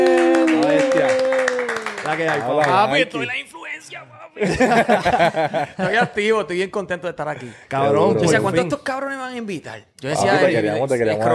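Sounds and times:
audience applause: 0:00.0 - 0:03.3
speech: 0:02.1 - 0:03.6, 0:04.4 - 0:11.3
laughter: 0:04.3 - 0:06.4.

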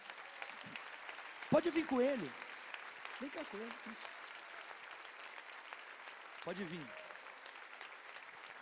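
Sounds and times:
audience applause: 0:00.0 - 0:08.6
speech: 0:01.5 - 0:02.4, 0:03.2 - 0:04.2, 0:06.4 - 0:07.0.

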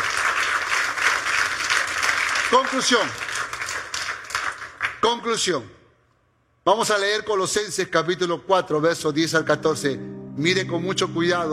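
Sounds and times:
audience applauding: 0:00.0 - 0:05.0
speech: 0:02.5 - 0:03.2, 0:05.0 - 0:05.8, 0:06.6 - 0:11.5.

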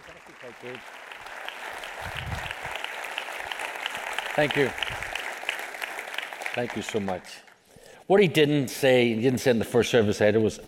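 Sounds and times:
church congregation applause welcoming an Assemblies of God missionary speaker: 0:00.0 - 0:07.6
speech: 0:00.4 - 0:01.0, 0:02.0 - 0:02.5, 0:04.4 - 0:05.0, 0:06.6 - 0:07.5, 0:08.1 - 0:10.6.

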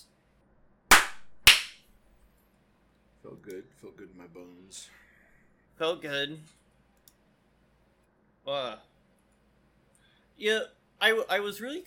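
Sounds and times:
single hand clap: 0:00.9 - 0:01.8
speech: 0:03.2 - 0:05.1, 0:05.8 - 0:06.6, 0:08.5 - 0:08.9, 0:10.4 - 0:11.8.

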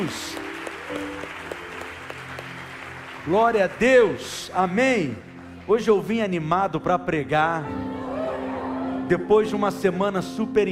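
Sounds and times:
speech: 0:00.0 - 0:01.6, 0:03.2 - 0:07.9, 0:09.1 - 0:10.7
audience applause: 0:00.0 - 0:06.1.

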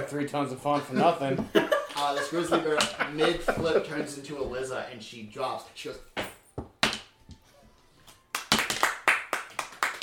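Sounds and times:
speech: 0:00.0 - 0:06.2
laughter: 0:00.8 - 0:04.2
group of people clapping: 0:08.3 - 0:10.0.

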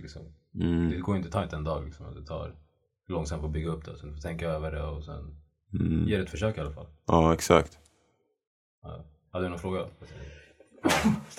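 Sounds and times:
speech: 0:00.1 - 0:07.8, 0:08.8 - 0:11.3
person sneezing: 0:10.8 - 0:11.3.

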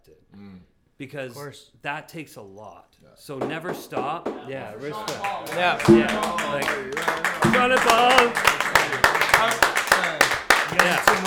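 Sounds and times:
speech: 0:00.1 - 0:11.2
hand claps: 0:03.4 - 0:11.2.

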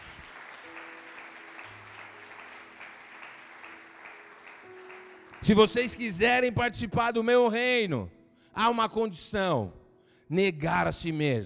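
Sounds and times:
audience applauding: 0:00.0 - 0:06.3
speech: 0:05.4 - 0:11.4.

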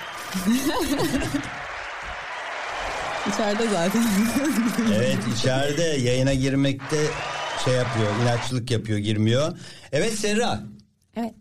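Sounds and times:
laughter: 0:00.0 - 0:01.7, 0:03.3 - 0:08.4
applause: 0:00.0 - 0:08.9
speech: 0:00.4 - 0:01.7, 0:03.2 - 0:11.4.

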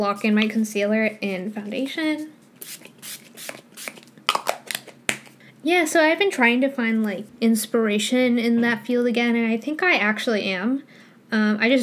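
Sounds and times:
speech: 0:00.0 - 0:03.2, 0:05.6 - 0:11.8
Urban Decay All Nighter Setting Spray sprayed on face: 0:02.6 - 0:04.1.

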